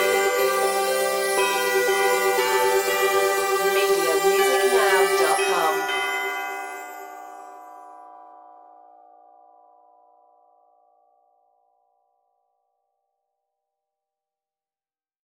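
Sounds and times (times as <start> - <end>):
light synthesized New Year song melody: 0.0 - 7.6.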